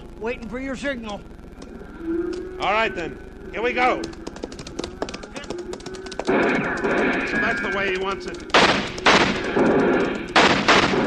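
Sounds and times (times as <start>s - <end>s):
speech: 0.2s - 1.4s, 2.0s - 4.2s, 6.3s - 8.8s, 9.5s - 10.3s
gunshots in a radio western drama: 5.8s - 11.0s.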